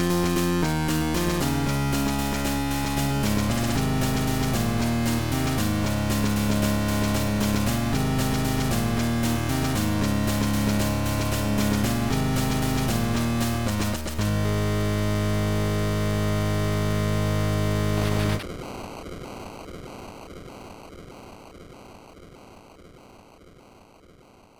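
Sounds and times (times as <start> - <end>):
8-bit chiptune: 0.0 - 18.4.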